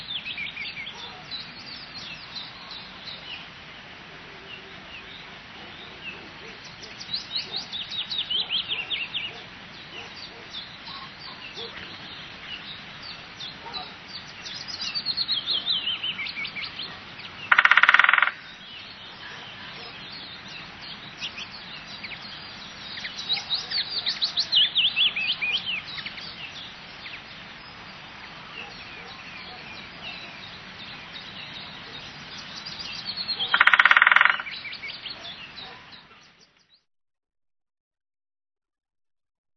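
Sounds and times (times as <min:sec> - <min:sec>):
songbird singing: 0:00.0 - 0:36.8
woodpecker rattling: 0:17.5 - 0:18.5, 0:33.4 - 0:34.6.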